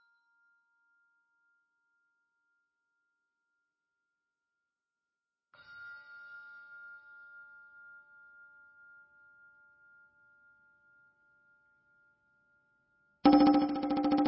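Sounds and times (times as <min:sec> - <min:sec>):
percussion duet: 0:13.3 - 0:14.2.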